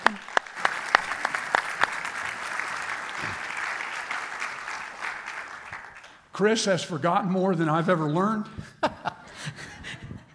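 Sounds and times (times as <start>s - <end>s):
audience applause: 0.0s - 6.2s
speech: 6.4s - 8.8s.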